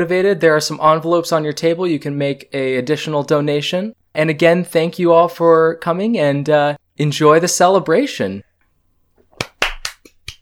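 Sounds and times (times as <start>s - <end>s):
speech: 0.0s - 8.5s
polite applause: 9.4s - 10.3s.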